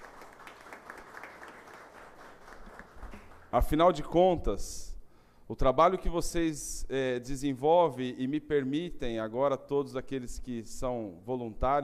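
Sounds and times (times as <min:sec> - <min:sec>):
audience applause: 0:00.0 - 0:03.5
speech: 0:03.5 - 0:04.9, 0:05.5 - 0:11.8.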